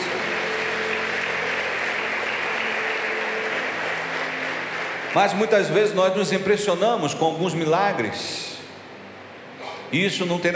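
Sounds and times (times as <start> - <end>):
audience applause: 0.0 - 6.1
speech: 5.2 - 8.5, 9.9 - 10.5.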